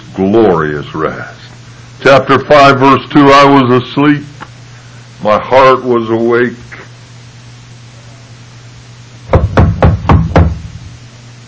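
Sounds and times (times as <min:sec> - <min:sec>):
speech: 0:00.2 - 0:04.4, 0:05.2 - 0:06.7
knocking on a door: 0:09.3 - 0:10.7.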